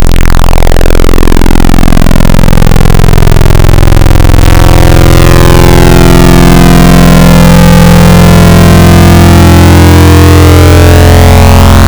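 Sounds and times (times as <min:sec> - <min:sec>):
FM wavetable synthesizer chords: 0:00.0 - 0:11.8.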